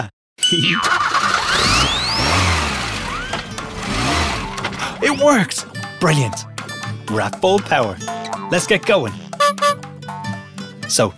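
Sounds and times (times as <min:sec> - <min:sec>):
speech: 0:00.0 - 0:01.1, 0:05.0 - 0:06.5, 0:07.1 - 0:09.2, 0:10.9 - 0:11.1
truck engine cranking, starting and revving: 0:00.8 - 0:06.0.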